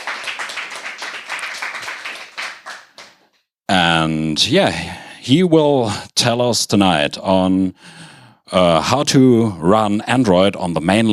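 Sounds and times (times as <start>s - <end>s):
audience applause: 0.0s - 3.2s
speech: 4.0s - 11.1s.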